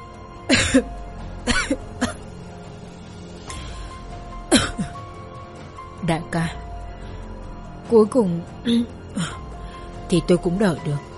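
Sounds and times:
speech: 0:00.7 - 0:01.7, 0:06.1 - 0:06.6, 0:07.9 - 0:09.4, 0:10.1 - 0:11.1
man coughing hoarsely: 0:01.5 - 0:02.2, 0:04.5 - 0:05.0.

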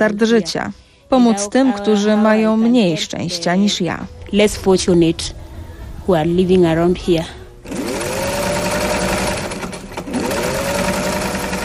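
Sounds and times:
speech: 0:00.0 - 0:05.4, 0:06.1 - 0:07.8
sewing machine stitching bags and backpacks: 0:07.6 - 0:11.6.

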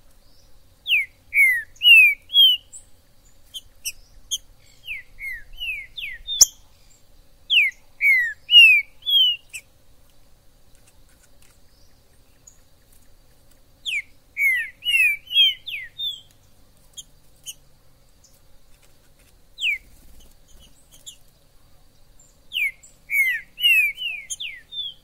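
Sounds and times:
green-winged saltator song: 0:00.8 - 0:02.9, 0:03.5 - 0:09.7, 0:13.8 - 0:16.3, 0:19.6 - 0:21.2, 0:22.2 - 0:25.0.

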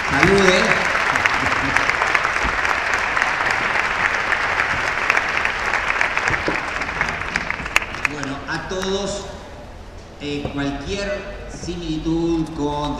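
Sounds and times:
audience applause: 0:00.0 - 0:08.4
speech: 0:00.1 - 0:00.6, 0:10.6 - 0:12.9.

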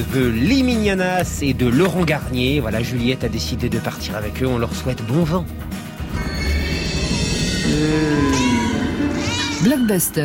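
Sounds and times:
speech: 0:00.0 - 0:06.3, 0:07.8 - 0:08.2, 0:09.6 - 0:10.2
cat meowing: 0:07.5 - 0:10.1.

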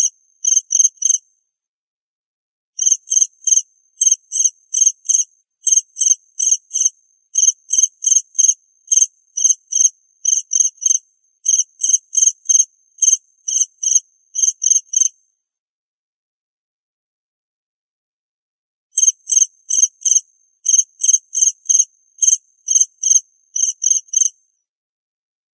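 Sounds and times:
cricket chirping: 0:00.0 - 0:01.3, 0:02.8 - 0:15.2, 0:19.0 - 0:24.4.

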